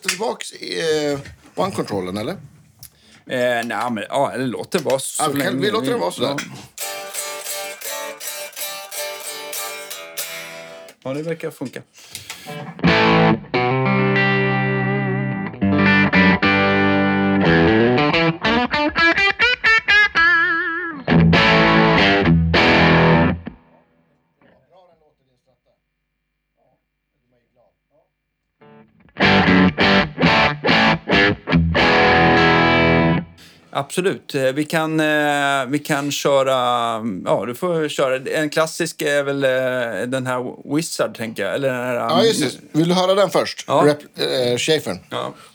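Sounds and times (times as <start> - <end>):
speech: 0.0 - 2.6, 3.2 - 6.7, 11.0 - 14.2, 33.8 - 45.5
Stratocaster electric guitar through heavy distortion: 6.8 - 11.0, 12.4 - 23.8, 28.6 - 33.4.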